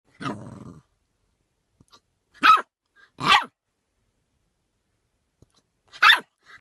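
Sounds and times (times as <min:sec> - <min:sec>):
puppy barking: 0:02.4 - 0:03.6, 0:05.9 - 0:06.4.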